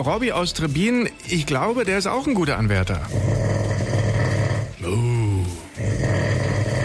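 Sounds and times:
speech: 0.0 - 3.4, 4.9 - 5.1
loud rough snoring with a deep rattling rasp: 2.8 - 6.8.

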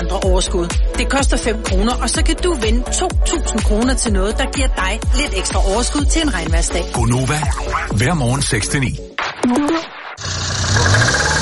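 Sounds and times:
speech: 0.2 - 11.2
car engine sputtering: 10.2 - 11.4.

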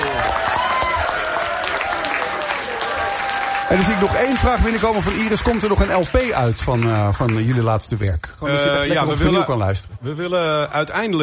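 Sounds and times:
audience applause: 0.0 - 8.1
speech: 3.7 - 11.2.

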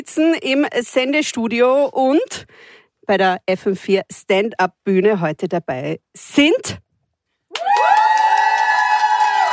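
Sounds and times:
speech: 0.1 - 6.8
studio audience cheering at the FM4 stand-up stage in a radio studio: 7.5 - 9.5.

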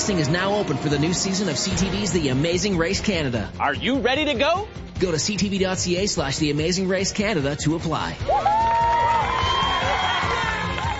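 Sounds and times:
speech: 0.0 - 8.8
excited shoppers cheering and shouting at a Black Friday sale: 8.2 - 10.9
whoops and high calls from shoppers: 8.3 - 10.9.

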